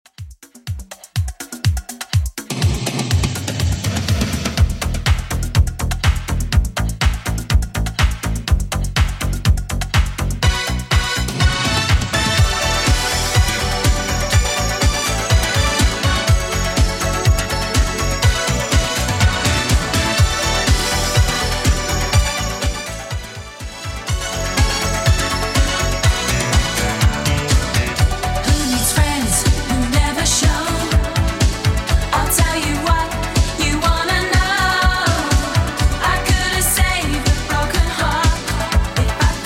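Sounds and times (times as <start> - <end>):
80s drum beat: 0.0 - 39.4.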